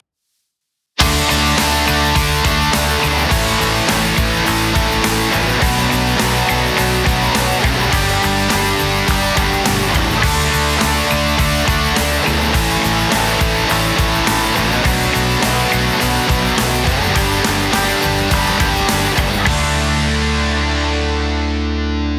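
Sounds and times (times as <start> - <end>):
rock music: 1.0 - 22.1.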